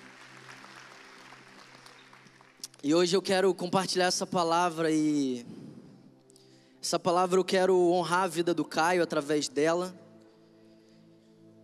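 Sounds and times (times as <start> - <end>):
audience applause: 0.0 - 2.8
speech: 2.8 - 5.6, 6.9 - 10.0.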